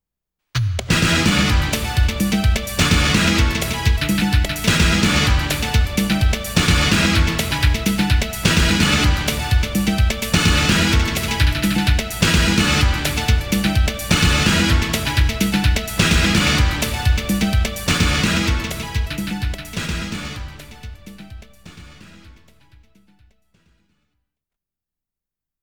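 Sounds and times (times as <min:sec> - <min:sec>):
clear demo background music: 0:00.8 - 0:23.2.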